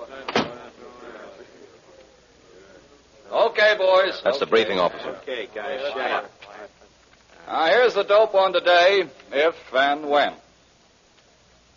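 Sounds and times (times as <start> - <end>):
door closing: 0.3 - 0.6
speech: 3.3 - 6.8, 7.5 - 10.4.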